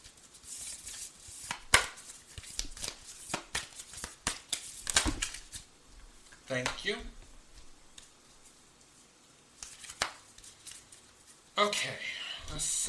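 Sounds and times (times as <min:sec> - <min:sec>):
playing cards shuffled during a card reading: 0:00.0 - 0:05.7, 0:09.6 - 0:11.4
speech: 0:06.5 - 0:07.2, 0:11.6 - 0:12.8.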